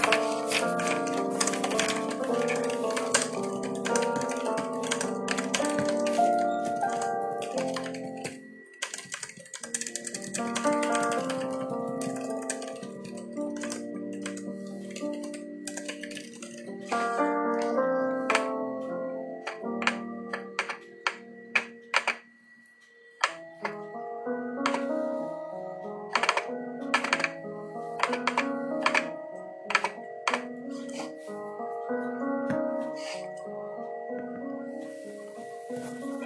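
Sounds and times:
typing clicks: 0:00.0 - 0:16.7, 0:24.6 - 0:25.0, 0:26.1 - 0:27.4, 0:28.0 - 0:29.1, 0:29.7 - 0:30.5
soft piano music: 0:00.0 - 0:36.2.

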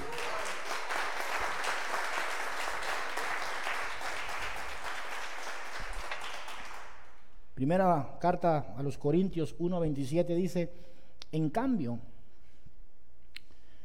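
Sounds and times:
audience applause: 0:00.0 - 0:07.1
speech: 0:07.6 - 0:12.1.

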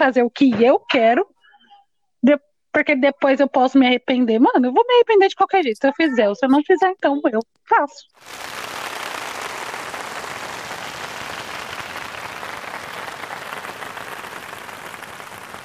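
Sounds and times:
speech: 0:00.0 - 0:01.3, 0:02.2 - 0:08.7
audience applause: 0:08.2 - 0:15.6.

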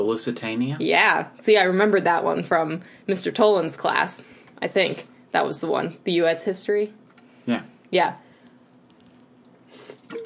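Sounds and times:
speech: 0:00.0 - 0:08.2
person taking a drink: 0:08.9 - 0:10.2.

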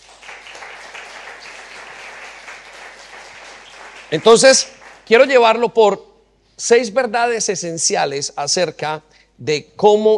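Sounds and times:
crowd applause: 0:00.0 - 0:05.2
speech: 0:04.1 - 0:10.1.

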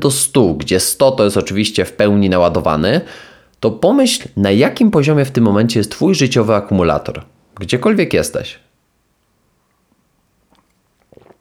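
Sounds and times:
speech: 0:00.0 - 0:08.6
coffee sipping and slurping: 0:09.7 - 0:11.3.

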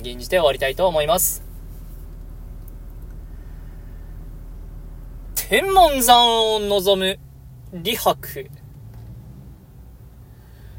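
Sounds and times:
speech: 0:00.0 - 0:01.4, 0:05.5 - 0:08.6
air conditioner running: 0:00.0 - 0:08.4.

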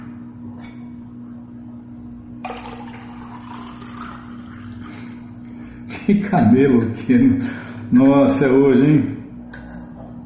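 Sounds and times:
constant low electrical hum: 0:00.0 - 0:10.2
water being poured into a cup: 0:02.4 - 0:05.5
speech: 0:06.1 - 0:09.1.

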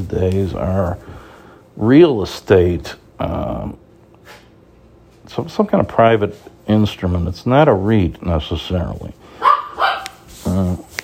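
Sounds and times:
speech: 0:00.0 - 0:01.1, 0:01.8 - 0:04.4, 0:05.3 - 0:09.4, 0:10.4 - 0:10.9
dog barking: 0:09.4 - 0:10.2.

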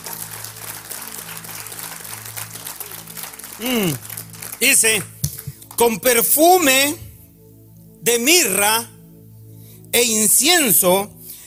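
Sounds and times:
audience applause: 0:00.0 - 0:05.8
speech: 0:03.6 - 0:05.1, 0:05.8 - 0:07.0, 0:08.0 - 0:08.9, 0:09.9 - 0:11.2.

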